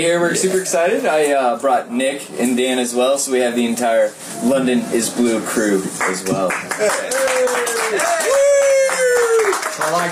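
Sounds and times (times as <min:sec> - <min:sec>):
speech: 0:00.0 - 0:08.5, 0:09.9 - 0:10.1
audience applause: 0:06.0 - 0:10.1.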